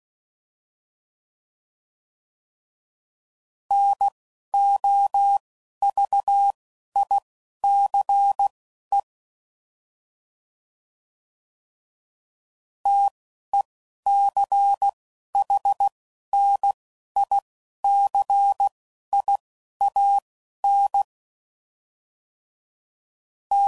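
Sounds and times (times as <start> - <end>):
CW Morse code groups at 10 WPM: 3.7 - 9.0, 12.9 - 13.1, 14.1 - 21.0.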